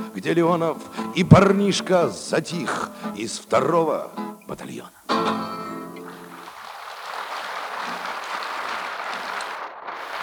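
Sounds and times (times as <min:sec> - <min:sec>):
held musical tone: 0:00.0 - 0:06.4
concert audience applause: 0:00.0 - 0:10.2
speech: 0:00.2 - 0:05.6.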